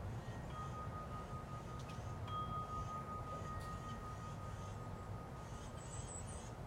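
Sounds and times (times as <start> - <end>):
thin held tone: 0.1 - 6.6
goldfinch singing in bright chirps and twitters: 0.2 - 6.6.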